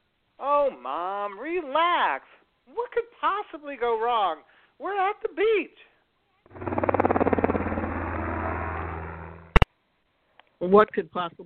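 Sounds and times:
speech: 0:00.4 - 0:05.9, 0:10.6 - 0:11.4
helicopter engine roaring with rotor chop: 0:06.5 - 0:09.7.

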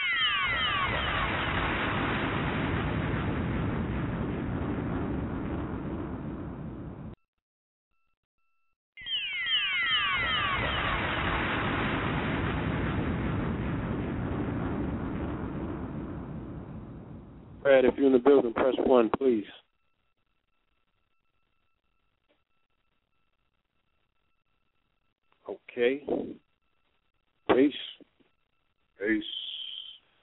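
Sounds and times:
bomb explosions with falling whistle: 0:00.2 - 0:07.2, 0:09.9 - 0:19.2
speech: 0:17.7 - 0:19.6, 0:25.8 - 0:26.4, 0:27.5 - 0:27.9, 0:29.0 - 0:29.4.

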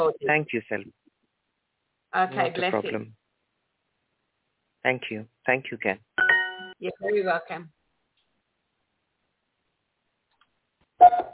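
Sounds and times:
speech: 0:00.0 - 0:01.0, 0:02.1 - 0:03.2, 0:04.8 - 0:06.2, 0:06.8 - 0:07.8
bell ringing: 0:06.2 - 0:06.8.

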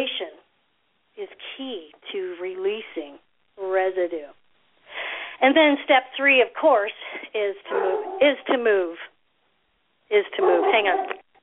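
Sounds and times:
speech: 0:05.5 - 0:09.1, 0:10.1 - 0:11.2
startled dog barking and yelping: 0:07.7 - 0:08.6, 0:10.3 - 0:11.3.

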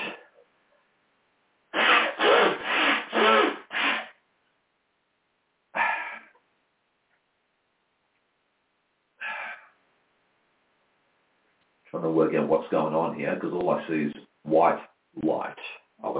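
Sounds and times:
person blowing nose in loud rasping honks: 0:00.0 - 0:00.3, 0:01.7 - 0:04.2
speech: 0:12.0 - 0:16.1.

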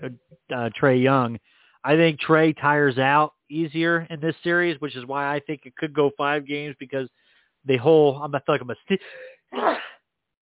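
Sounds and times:
speech: 0:00.0 - 0:10.0
person sneezing: 0:09.1 - 0:10.0.

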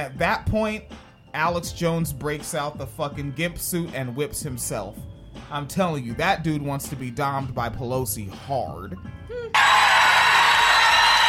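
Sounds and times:
speech: 0:00.0 - 0:09.8
crowd cheering: 0:09.5 - 0:11.2.

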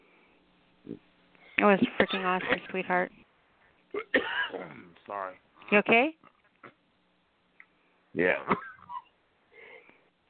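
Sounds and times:
speech: 0:00.9 - 0:03.2, 0:03.9 - 0:06.8, 0:08.2 - 0:08.6
person coughing: 0:02.1 - 0:02.7, 0:04.0 - 0:04.8, 0:08.5 - 0:09.1.

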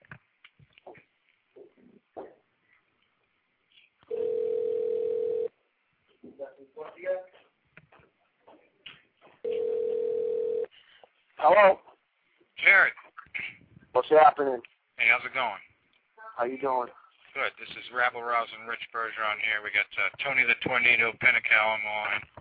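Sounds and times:
telephone ringback tone: 0:04.1 - 0:05.5, 0:09.5 - 0:10.7
speech: 0:11.5 - 0:11.8, 0:14.1 - 0:15.7, 0:16.4 - 0:22.3.

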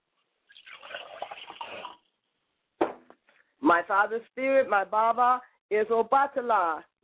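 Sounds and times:
pouring liquid libation: 0:00.4 - 0:02.2
speech: 0:03.7 - 0:06.9.

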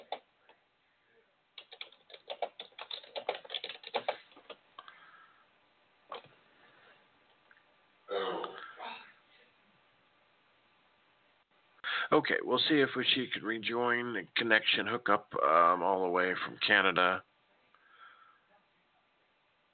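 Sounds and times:
typing on a keyboard: 0:00.0 - 0:00.2, 0:01.6 - 0:04.6
speech: 0:12.1 - 0:17.3.

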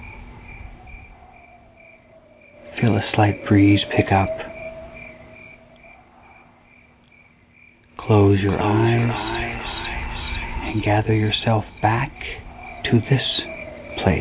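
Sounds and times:
night insects chirping: 0:00.0 - 0:14.1
speech: 0:02.8 - 0:04.4, 0:08.1 - 0:09.3, 0:10.7 - 0:13.3.

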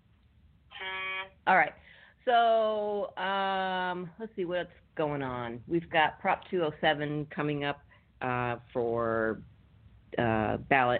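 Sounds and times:
air horn sound effect blast: 0:00.7 - 0:01.4
speech: 0:01.5 - 0:09.5, 0:10.1 - 0:10.9.

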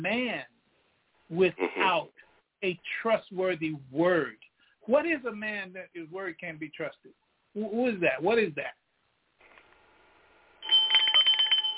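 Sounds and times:
speech: 0:01.3 - 0:08.8
bell ringing: 0:10.6 - 0:11.7.

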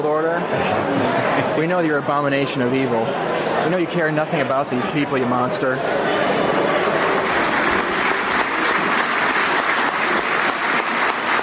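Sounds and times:
speech: 0:00.0 - 0:06.3
crowd clapping: 0:06.4 - 0:11.4.

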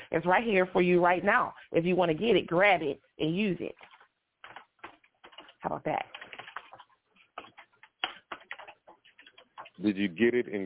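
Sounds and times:
speech: 0:00.1 - 0:03.9, 0:05.6 - 0:06.2, 0:09.8 - 0:10.6
typing on a keyboard: 0:03.8 - 0:09.8.

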